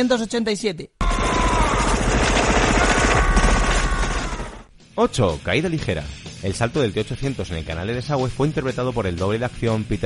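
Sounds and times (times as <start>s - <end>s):
speech: 0.0s - 1.3s, 5.0s - 10.0s
rotary cannon minigun firing: 1.0s - 4.7s.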